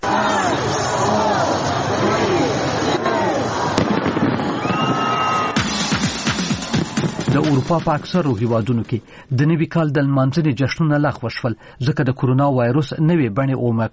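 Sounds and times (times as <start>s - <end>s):
crowd voices and cheering: 0.0s - 8.8s
fireworks at Sydney's 2022 New Year celebration: 3.4s - 9.0s
whistling tones of fireworks: 4.6s - 5.7s
speech: 7.4s - 13.9s.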